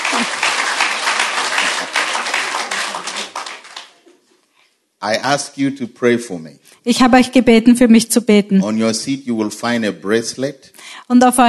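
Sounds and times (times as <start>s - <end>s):
audience applause: 0.0s - 4.0s
speech: 0.2s - 0.4s, 5.0s - 11.4s.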